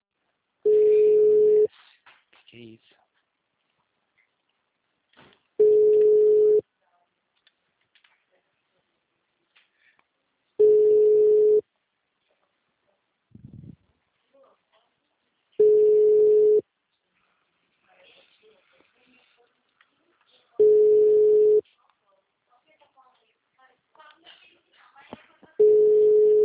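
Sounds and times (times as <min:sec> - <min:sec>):
faint scattered noises: 0:00.1 - 0:26.4
telephone busy signal line tones: 0:00.7 - 0:01.7, 0:05.6 - 0:06.6, 0:10.6 - 0:11.6, 0:15.6 - 0:16.6, 0:20.6 - 0:21.6, 0:25.6 - 0:26.4
speech: 0:02.6 - 0:03.0.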